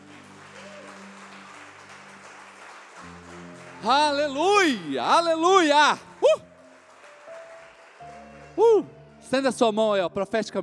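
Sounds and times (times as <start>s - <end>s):
crowd applause: 0.0s - 8.9s
speech: 3.8s - 6.5s, 8.6s - 10.6s.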